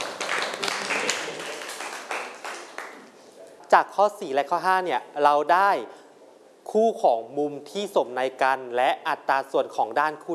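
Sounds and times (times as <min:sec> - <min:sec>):
classroom clapping for a classmate: 0:00.0 - 0:03.2
speech: 0:03.7 - 0:06.0, 0:06.7 - 0:10.3.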